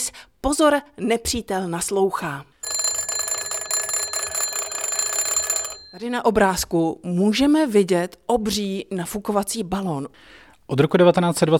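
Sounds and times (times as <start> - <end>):
speech: 0.0 - 2.5, 6.0 - 11.5
old crank telephone ringing with a metallic bell: 2.6 - 6.7.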